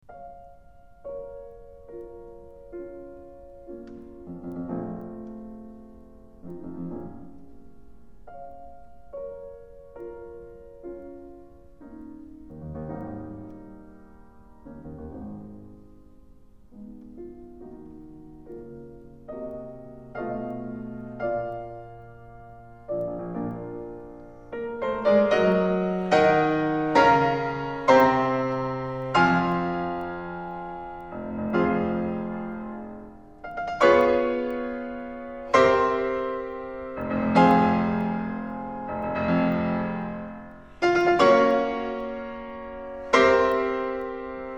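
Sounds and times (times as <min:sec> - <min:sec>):
piano sonata: 0:00.0 - 0:44.5.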